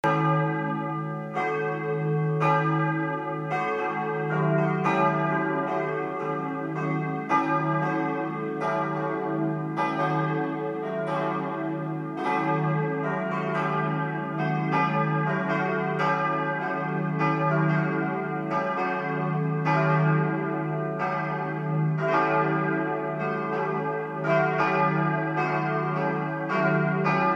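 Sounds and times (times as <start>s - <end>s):
church bells of Lutherkirche Speldorf: 0.0s - 27.3s.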